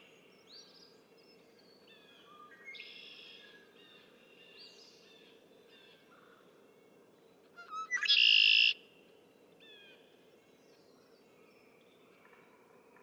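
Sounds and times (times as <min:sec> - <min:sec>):
Red-winged Blackbird: 0:07.7 - 0:08.8.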